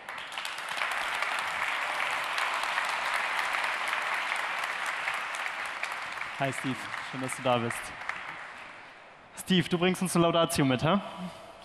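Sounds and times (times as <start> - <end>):
audience applause: 0.0 - 8.9
speech: 6.4 - 8.0, 9.5 - 11.6.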